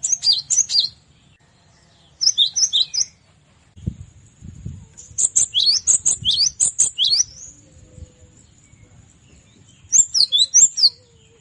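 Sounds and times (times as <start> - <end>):
cinereous tit calling in rapid high slurred chirps: 0.0 - 1.0, 2.2 - 3.2, 5.0 - 7.8, 9.8 - 11.3.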